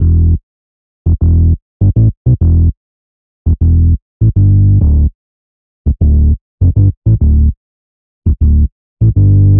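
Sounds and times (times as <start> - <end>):
electric bass rumble through a woofer: 0.0 - 0.4, 1.1 - 2.7, 3.5 - 5.1, 5.9 - 7.6, 8.3 - 9.5.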